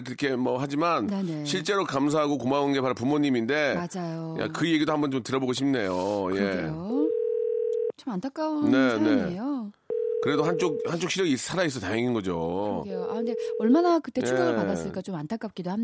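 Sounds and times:
speech: 0:00.0 - 0:07.2, 0:08.0 - 0:15.8
telephone dial tone: 0:07.1 - 0:07.9, 0:09.9 - 0:10.9, 0:13.2 - 0:13.7.

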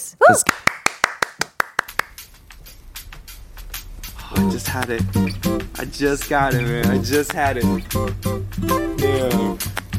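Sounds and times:
speech: 0:00.0 - 0:00.7, 0:04.3 - 0:09.8
sharp hand claps welcoming a song: 0:00.4 - 0:02.2
soft loose clapping: 0:00.4 - 0:02.3, 0:09.6 - 0:09.9.

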